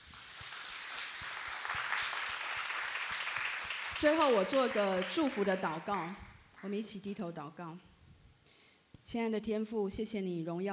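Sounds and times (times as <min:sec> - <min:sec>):
audience applause: 0:00.0 - 0:06.2
speech: 0:04.0 - 0:07.9, 0:09.1 - 0:10.7.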